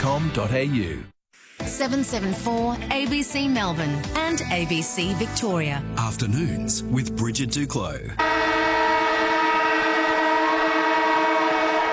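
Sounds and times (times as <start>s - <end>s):
speech: 0.1s - 8.6s
siren blaring: 8.2s - 11.9s.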